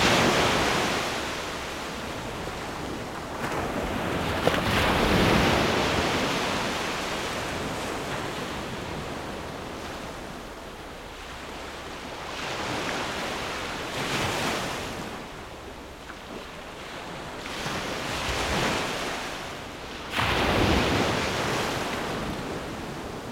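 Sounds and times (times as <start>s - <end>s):
waves at sea: 0.0s - 23.2s.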